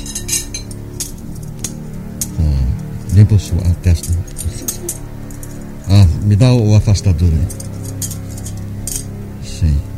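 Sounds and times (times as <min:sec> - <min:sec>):
metal surgical forceps clinking: 0:00.0 - 0:06.0, 0:07.2 - 0:09.2
low hum: 0:00.0 - 0:09.9
speech: 0:03.2 - 0:04.6, 0:06.2 - 0:07.7, 0:09.6 - 0:09.9.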